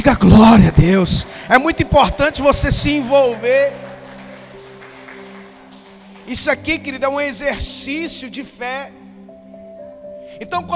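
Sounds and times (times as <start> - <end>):
speech: 0.0 - 3.8, 6.3 - 9.0, 10.4 - 10.7
audience applause: 0.0 - 6.8.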